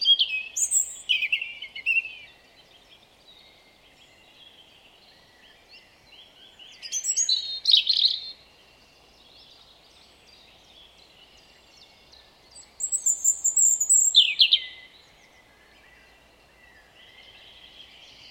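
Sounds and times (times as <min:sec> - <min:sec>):
European robin high warbling song: 0:00.0 - 0:18.2
quiet hiss: 0:00.0 - 0:18.2.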